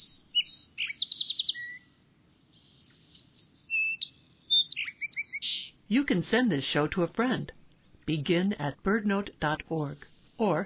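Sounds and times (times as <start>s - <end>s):
song sparrow singing: 0.0s - 2.0s, 2.6s - 5.8s
speech: 5.9s - 10.6s.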